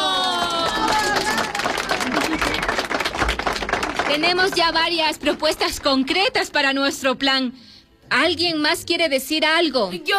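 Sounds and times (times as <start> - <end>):
whoops and cheering voices: 0.0 - 2.8
crowd clapping: 0.0 - 6.0
speech: 4.2 - 10.1.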